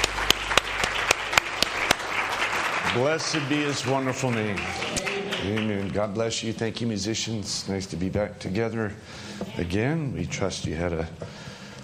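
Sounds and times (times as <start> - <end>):
church congregation clapping along during a morning worship service: 0.0 - 6.3
speech: 2.9 - 11.5.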